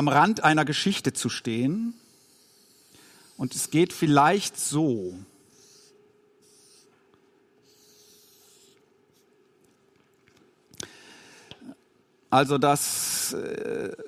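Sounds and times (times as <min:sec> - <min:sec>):
speech: 0:00.0 - 0:02.0, 0:03.4 - 0:05.3, 0:12.3 - 0:14.0
pen drawing on paper: 0:01.7 - 0:04.6, 0:05.4 - 0:06.9, 0:07.6 - 0:09.3.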